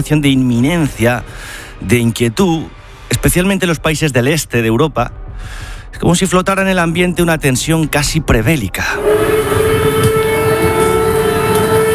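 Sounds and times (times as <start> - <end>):
speech: 0.0 - 9.6
air raid siren: 8.9 - 11.9.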